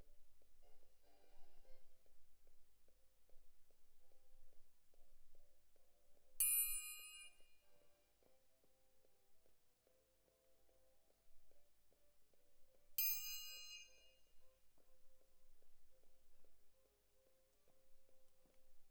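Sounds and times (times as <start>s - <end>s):
close percussion: 6.4s - 7.8s, 12.9s - 14.4s.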